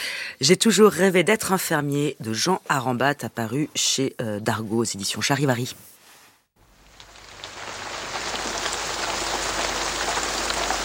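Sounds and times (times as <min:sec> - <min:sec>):
speech: 0:00.4 - 0:06.0
steady rain falling: 0:06.6 - 0:10.8.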